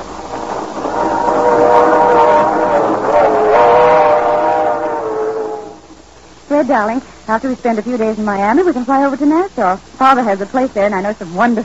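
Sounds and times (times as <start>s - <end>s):
train travelling: 0.0s - 6.0s
long wavering whistle-like tone: 0.8s - 5.9s
speech: 6.7s - 11.6s.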